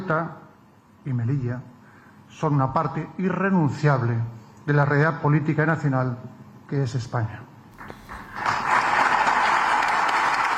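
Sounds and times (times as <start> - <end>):
speech: 0.1 - 0.4, 1.0 - 1.7, 2.3 - 7.5
sustained applause from a large audience: 7.8 - 10.5.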